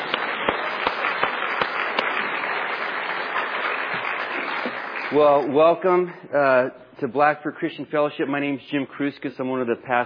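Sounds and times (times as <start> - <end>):
audience clapping: 0.0 - 6.0
speech: 5.1 - 10.0.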